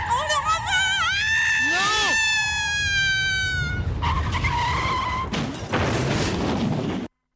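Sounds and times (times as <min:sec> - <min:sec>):
speeding car with failed brakes skidding on a bend: 0:00.0 - 0:05.7
car crash sound effect: 0:04.0 - 0:07.1.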